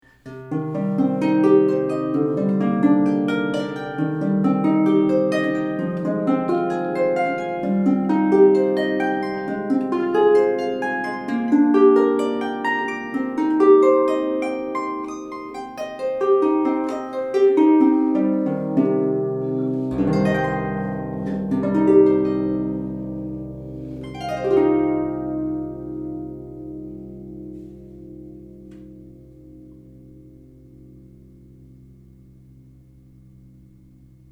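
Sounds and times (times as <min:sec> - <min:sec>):
harp playing: 0:00.0 - 0:34.3.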